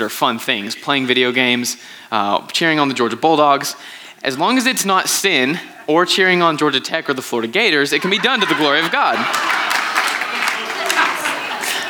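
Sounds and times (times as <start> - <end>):
speech: 0.0 - 9.8
laughter: 3.0 - 11.8
room full of people clapping: 7.5 - 11.8.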